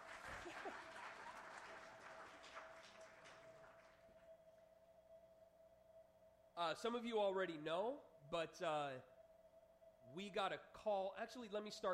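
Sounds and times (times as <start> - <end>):
laughter: 0.0 - 2.0
audience applause: 0.0 - 4.2
speech: 6.6 - 9.1, 10.1 - 11.9.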